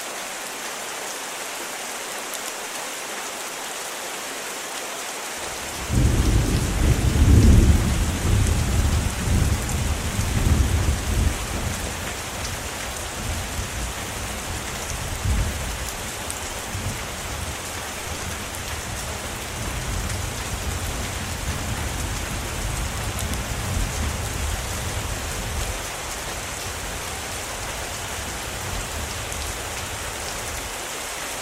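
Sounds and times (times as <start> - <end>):
rain storm: 0.0 - 31.4
thunder: 5.9 - 11.7.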